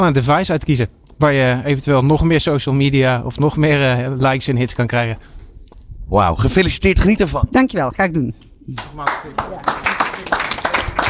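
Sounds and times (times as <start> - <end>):
speech: 0.0 - 5.4, 6.1 - 9.9
hesitant applause from an audience: 8.8 - 11.0.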